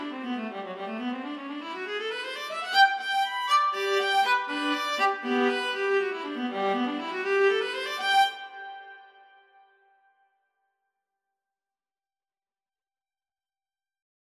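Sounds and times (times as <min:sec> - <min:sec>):
lively intermezzo: 0:00.0 - 0:09.0.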